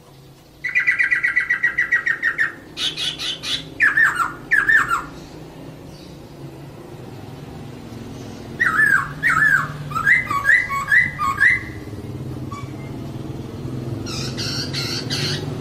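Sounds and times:
bird song: 0.0s - 15.5s.

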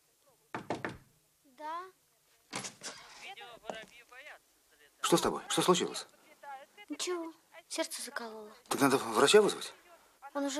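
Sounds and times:
knocking on a door: 0.5s - 1.1s
speech: 5.1s - 6.2s, 7.0s - 10.5s.

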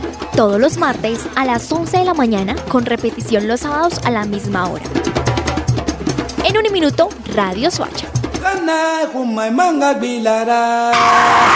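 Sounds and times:
speech: 0.4s - 5.3s, 6.5s - 11.5s
car tires screeching: 10.9s - 11.5s.

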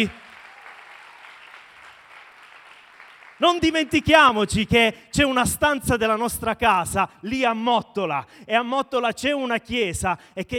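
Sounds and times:
speech: 0.0s - 0.2s, 3.4s - 10.5s
faint applause from a church congregation for members from Mottola: 0.0s - 4.7s.

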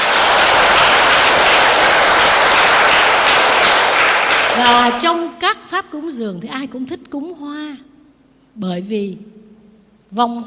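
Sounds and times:
audience applause: 0.0s - 5.2s
speech: 4.6s - 7.9s, 8.6s - 9.4s, 10.1s - 10.4s.

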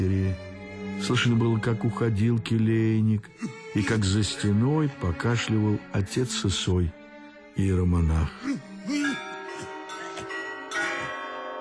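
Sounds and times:
speech: 1.0s - 7.0s, 7.6s - 9.0s
monastery clock striking the quarter hour: 8.9s - 11.5s.

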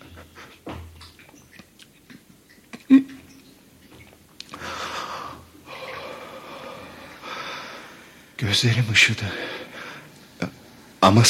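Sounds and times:
person gulping down water thirstily: 0.5s - 4.6s
heavy breathy exhale of relief: 4.6s - 8.2s
speech: 8.4s - 9.6s, 11.1s - 11.2s.

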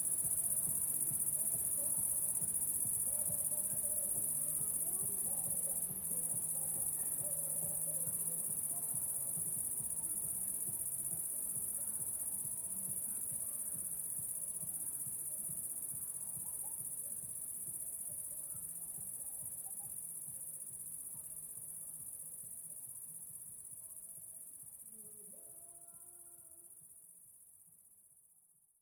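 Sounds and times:
cricket chorus trilling: 0.0s - 20.4s
low rhythmic pulsing: 0.0s - 21.8s.

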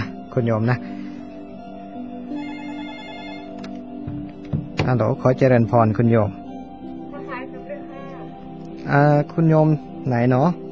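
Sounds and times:
speech: 0.4s - 1.0s, 4.8s - 6.4s, 8.9s - 10.6s
telephone ringing with an incoming call: 2.3s - 3.7s.

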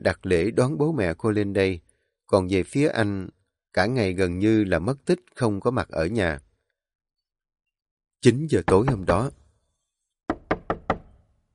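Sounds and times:
speech: 0.0s - 6.5s, 8.2s - 9.4s
knocking on a door: 8.7s - 9.3s, 10.3s - 11.2s.

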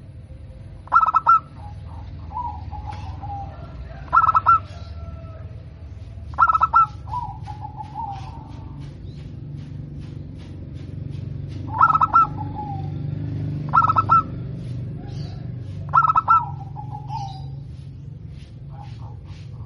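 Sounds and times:
zebra dove singing: 0.0s - 19.6s.

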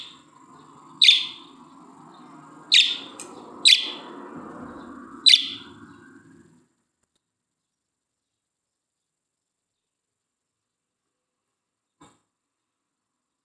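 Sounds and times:
budgerigar chirps: 0.0s - 0.2s, 1.0s - 1.5s, 2.7s - 4.1s, 5.2s - 5.8s.

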